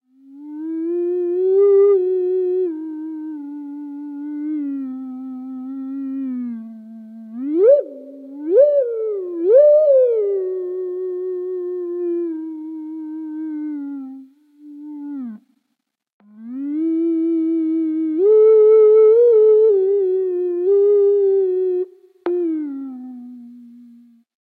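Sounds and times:
theremin: 0:00.2 - 0:15.4, 0:16.2 - 0:24.2.

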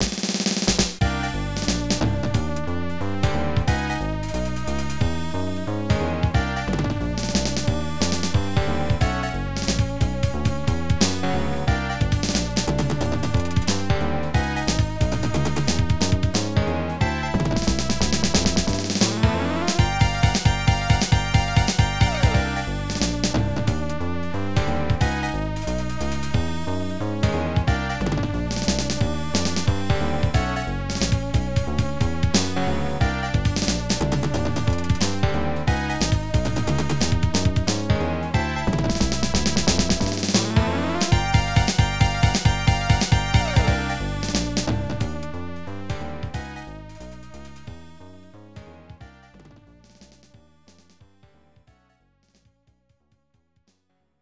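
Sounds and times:
suspense music: 0:00.7 - 0:51.0.

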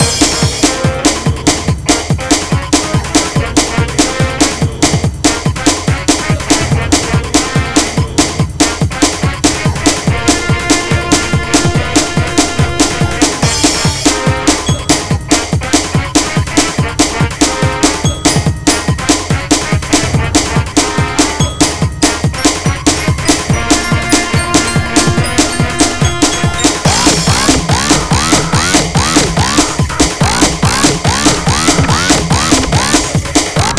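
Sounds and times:
battle music loop: 0:00.0 - 0:33.7.

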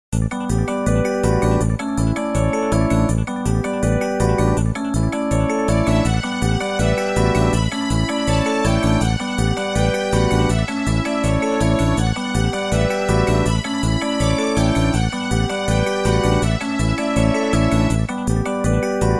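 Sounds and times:
background music: 0:00.2 - 0:19.1.

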